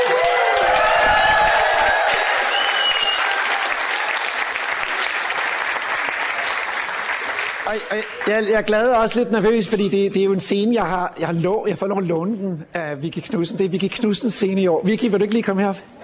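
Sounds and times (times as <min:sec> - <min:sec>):
high shouts: 0:00.0 - 0:04.1
live audience applauding and cheering: 0:00.0 - 0:08.5
speech: 0:07.7 - 0:16.0.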